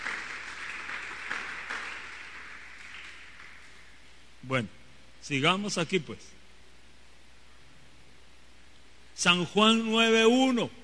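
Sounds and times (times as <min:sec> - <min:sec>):
audience applause: 0:00.0 - 0:04.0
speech: 0:04.5 - 0:06.4, 0:09.2 - 0:10.8.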